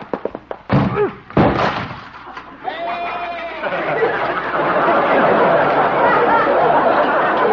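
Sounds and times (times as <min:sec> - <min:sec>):
goat crashing into and breaking a door: 0:00.7 - 0:02.1
laughter: 0:02.2 - 0:07.5.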